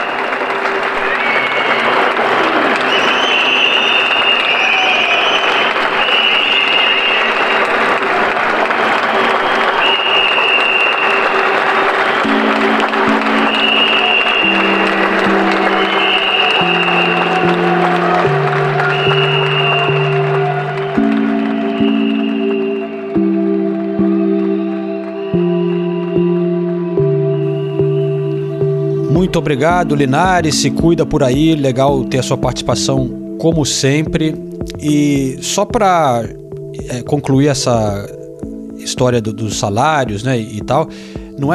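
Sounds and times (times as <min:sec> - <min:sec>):
applause: 0:00.0 - 0:29.9
speech: 0:29.4 - 0:38.2, 0:38.8 - 0:41.5.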